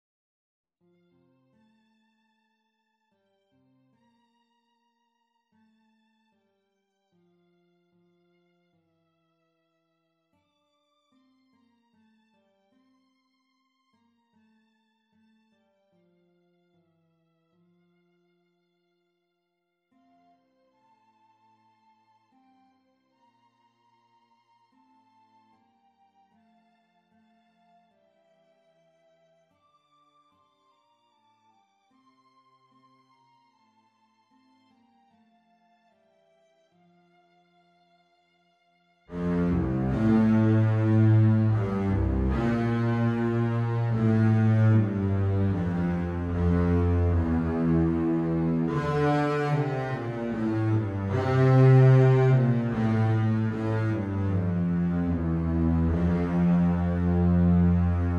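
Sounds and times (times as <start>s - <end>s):
double bass playing a sacred piece: 39.1s - 58.1s.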